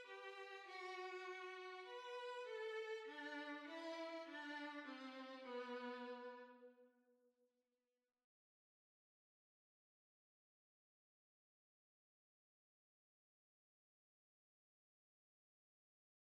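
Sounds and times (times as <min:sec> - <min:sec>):
violin: 0:00.0 - 0:06.7.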